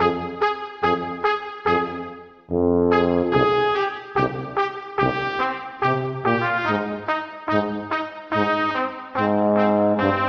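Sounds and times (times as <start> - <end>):
jazz horns loop: 0.0 - 10.2.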